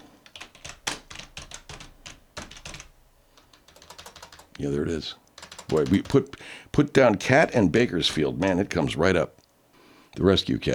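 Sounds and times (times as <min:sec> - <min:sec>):
rapid keyboard typing of a search: 0:00.0 - 0:04.6, 0:05.2 - 0:06.9
speech: 0:04.6 - 0:09.4, 0:10.2 - 0:10.7.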